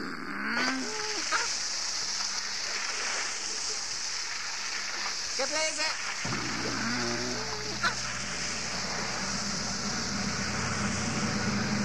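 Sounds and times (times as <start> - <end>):
water spraying from rear-facing street-cleaning nozzles washing asphalt: 0.6 - 11.8
speech: 5.4 - 6.4
low tonal sounds: 6.3 - 11.8.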